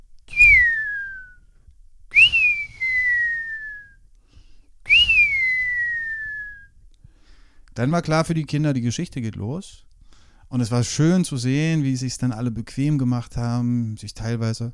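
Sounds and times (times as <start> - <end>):
person whistling in imitation of a buzzard's call: 0.3 - 1.5, 2.1 - 4.0, 4.9 - 6.7
speech: 7.8 - 9.9, 10.5 - 14.7.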